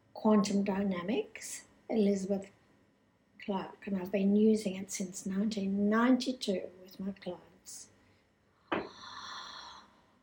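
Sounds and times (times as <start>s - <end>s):
speech: 0.2s - 2.6s, 3.4s - 7.9s
deep breath during a guided relaxation session: 8.0s - 10.2s.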